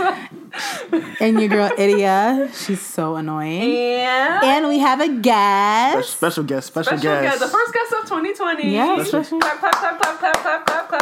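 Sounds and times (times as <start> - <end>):
laughter: 0.0 - 2.5, 8.9 - 11.0
speech: 0.9 - 11.0
hand claps: 9.4 - 11.0.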